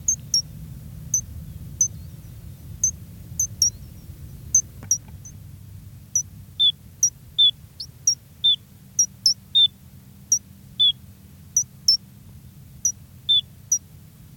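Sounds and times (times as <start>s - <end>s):
Gray's lark calls: 0.0s - 0.5s, 1.1s - 5.4s, 6.2s - 9.7s, 10.3s - 11.0s, 11.6s - 12.0s, 12.8s - 13.9s.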